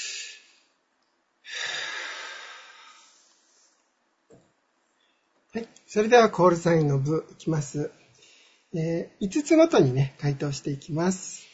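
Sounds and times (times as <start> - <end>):
deep breath drawn in as a relaxation exercise: 1.4 - 3.8, 8.1 - 8.7
speech: 5.5 - 8.0, 8.7 - 11.5.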